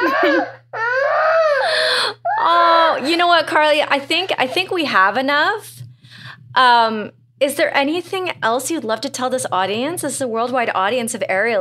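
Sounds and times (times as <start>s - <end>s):
baby crying in choppy whimpers and high-pitched wail: 0.0s - 3.1s
faint steady hum: 0.0s - 11.5s
speech: 3.0s - 5.8s, 6.6s - 11.5s.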